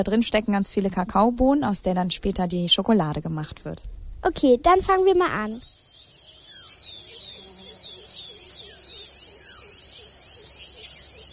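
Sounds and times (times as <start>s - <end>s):
speech: 0.0s - 5.7s
rainforest ambience with insects: 5.1s - 11.3s.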